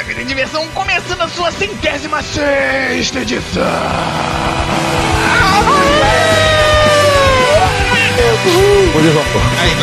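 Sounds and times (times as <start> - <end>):
speech: 0.2 - 6.2, 8.4 - 9.8
person yelling loudly: 5.2 - 9.0.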